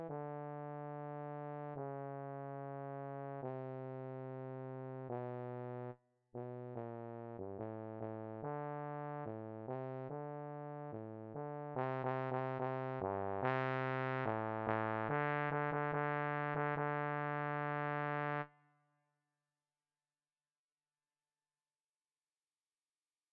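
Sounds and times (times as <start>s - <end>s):
bass: 0.0s - 18.4s.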